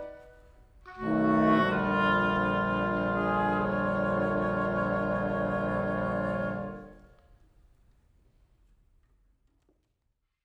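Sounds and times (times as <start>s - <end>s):
blues music: 0.9s - 6.9s.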